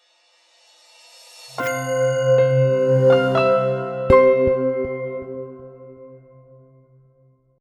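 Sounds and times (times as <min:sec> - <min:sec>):
sound logo: 0:01.6 - 0:06.6.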